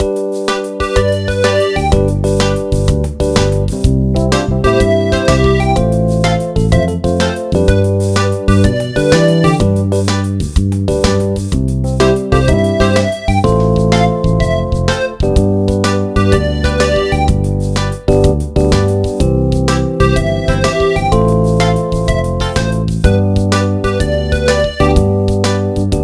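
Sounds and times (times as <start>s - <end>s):
music: 0.0s - 26.0s.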